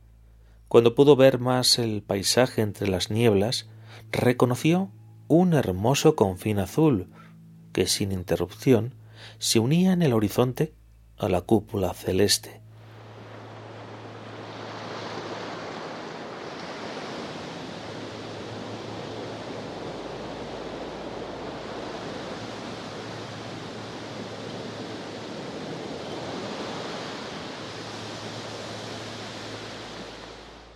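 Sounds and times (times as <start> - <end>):
speech: 0.7 - 12.6
sea waves: 12.6 - 30.7.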